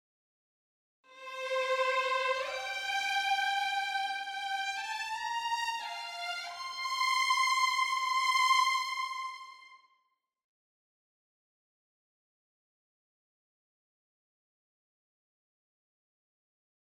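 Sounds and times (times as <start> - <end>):
agitato violins: 1.2 - 9.6.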